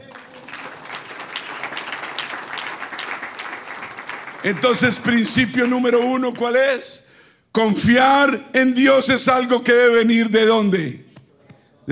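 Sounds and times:
applause: 0:00.0 - 0:06.0
speech: 0:04.4 - 0:07.0, 0:07.6 - 0:11.0.

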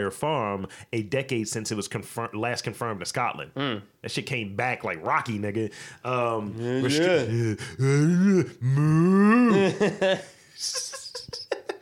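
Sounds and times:
speech: 0:00.0 - 0:11.0
man's voice imitating a dying cow with groans: 0:06.5 - 0:09.8
breathy sputtering gasps: 0:07.2 - 0:09.6
laughter: 0:09.3 - 0:11.8.

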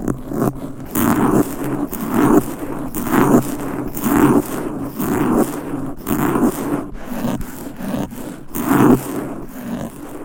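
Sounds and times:
low rumbling rub: 0:00.0 - 0:10.2
nails scratching mic covers fast and aggressively: 0:00.0 - 0:10.2.

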